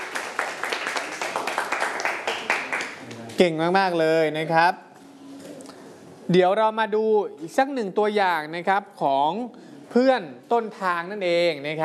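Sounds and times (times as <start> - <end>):
classroom clapping: 0.0 - 3.4
speech: 3.4 - 4.8, 6.3 - 11.8.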